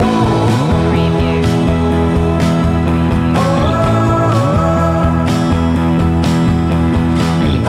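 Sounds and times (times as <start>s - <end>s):
rock music loop: 0.0s - 7.6s.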